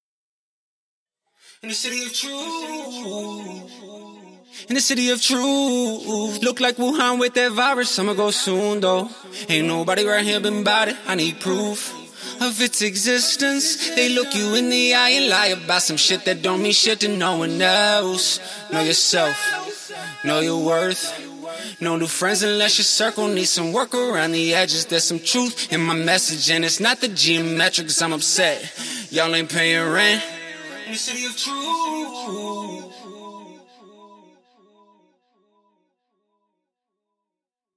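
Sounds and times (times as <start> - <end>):
a cappella singing in B: 1.6 - 34.3.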